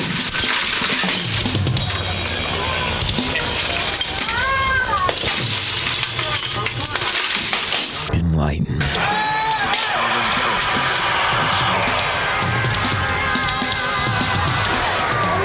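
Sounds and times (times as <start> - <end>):
TV screen glass shattering as it is smashed: 0.0 - 8.1
laughter: 8.8 - 15.4.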